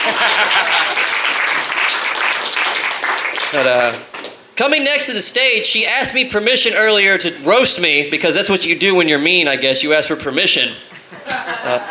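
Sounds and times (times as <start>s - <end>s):
laughter: 0.0s - 1.2s, 10.9s - 11.8s
audience clapping: 0.0s - 4.5s
speech: 0.1s - 1.2s, 3.5s - 10.9s, 11.7s - 11.8s.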